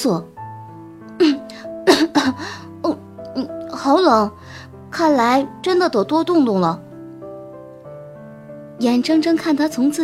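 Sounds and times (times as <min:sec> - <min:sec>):
speech: 0:00.0 - 0:00.3, 0:03.8 - 0:06.8, 0:08.8 - 0:10.0
throaty coughs: 0:01.9 - 0:02.3.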